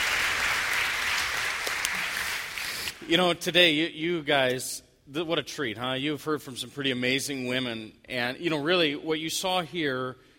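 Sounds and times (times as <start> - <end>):
audience applause: 0.0 - 3.0
speech: 3.0 - 10.3.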